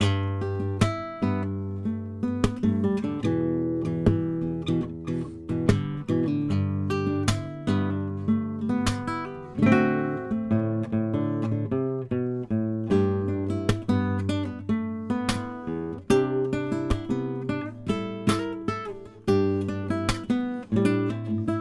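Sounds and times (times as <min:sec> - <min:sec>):
guitar: 0:00.0 - 0:21.6.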